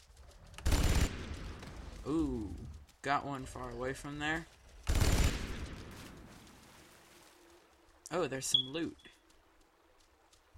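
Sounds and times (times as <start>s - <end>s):
Vulcan gun firing in a video game: 0.6s - 1.4s, 4.9s - 5.7s
speech: 2.0s - 4.6s, 8.1s - 9.2s.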